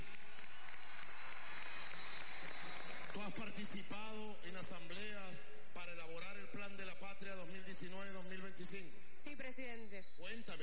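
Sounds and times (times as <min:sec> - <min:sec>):
faint applause for Zulia at a public event: 0:00.0 - 0:03.8
speech: 0:03.2 - 0:10.6.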